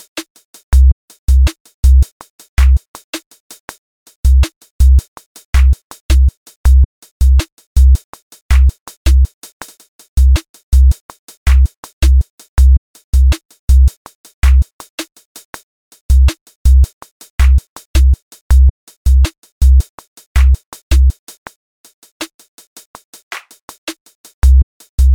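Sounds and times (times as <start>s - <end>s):
music loop with beats: 0.7s - 2.8s, 5.6s - 9.3s, 10.2s - 14.7s, 16.1s - 19.8s, 20.4s - 21.2s, 24.4s - 25.1s.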